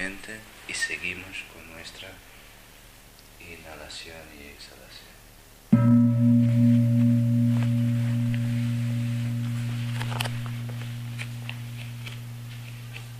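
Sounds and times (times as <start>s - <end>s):
speech: 0.2s - 2.3s, 3.4s - 5.1s
gong struck: 5.7s - 13.1s.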